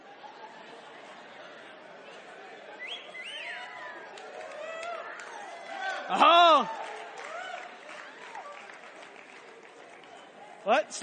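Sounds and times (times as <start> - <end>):
audience applause: 3.8 - 11.0
speech: 6.1 - 6.9, 10.6 - 11.0.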